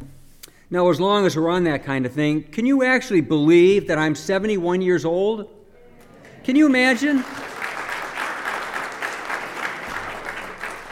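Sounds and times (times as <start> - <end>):
speech: 0.7 - 5.6, 6.4 - 7.5
audience clapping: 6.1 - 10.9.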